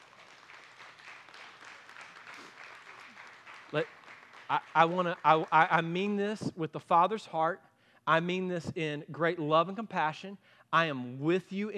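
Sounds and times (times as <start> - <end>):
audience applause: 0.0 - 5.8
speech: 3.7 - 11.7.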